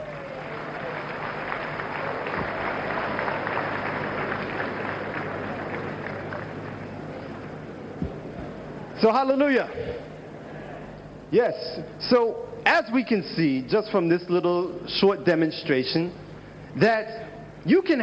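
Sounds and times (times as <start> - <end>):
audience applause: 0.0 - 7.8
speech: 9.0 - 10.1, 11.3 - 16.2, 16.8 - 18.0.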